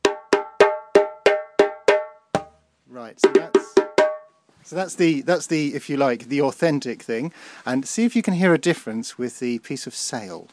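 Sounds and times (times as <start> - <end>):
cow skin djembe being struck: 0.0 - 2.6, 3.2 - 4.3
speech: 3.0 - 3.9, 4.6 - 10.5.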